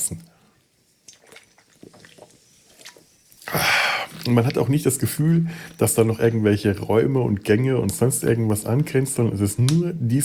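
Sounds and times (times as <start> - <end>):
person taking a sip of a drink: 1.0 - 4.6
speech: 4.2 - 10.2.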